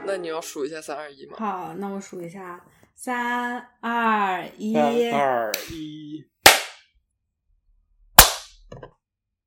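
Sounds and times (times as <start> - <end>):
speech: 0.3 - 6.3
hand clap for recording sync: 6.4 - 6.8, 8.2 - 8.5.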